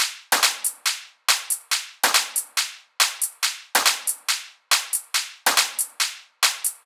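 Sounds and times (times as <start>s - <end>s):
drum top loop at 140 BPM: 0.0s - 6.8s.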